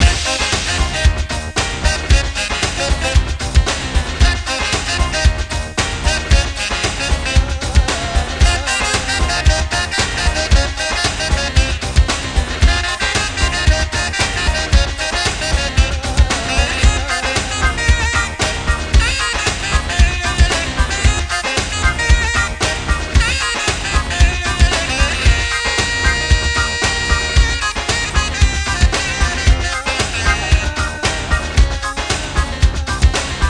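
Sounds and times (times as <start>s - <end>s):
Arabian salsa music: 0.0s - 33.4s.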